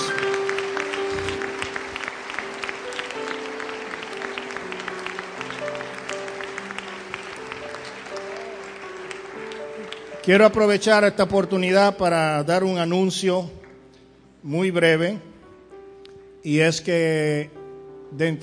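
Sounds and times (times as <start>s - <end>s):
audience applauding: 0.0s - 10.6s
speech: 10.3s - 13.6s, 14.4s - 15.3s, 16.4s - 18.4s.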